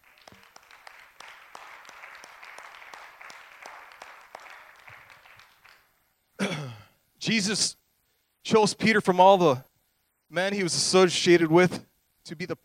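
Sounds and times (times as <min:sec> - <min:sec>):
audience hand clapping: 0:00.0 - 0:05.9
speech: 0:07.2 - 0:07.8, 0:08.5 - 0:09.7, 0:10.3 - 0:12.6.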